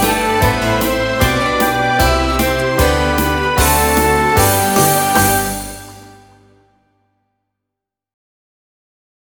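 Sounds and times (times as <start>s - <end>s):
recorder playing a folk tune: 0.0s - 6.6s.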